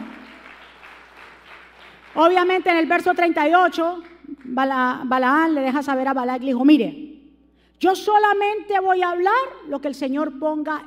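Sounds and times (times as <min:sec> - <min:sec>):
audience clapping: 0:00.0 - 0:03.2
speech: 0:02.2 - 0:07.0, 0:07.8 - 0:10.8.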